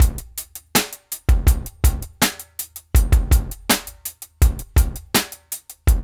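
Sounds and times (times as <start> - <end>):
funky drum loop: 0.0 - 6.0.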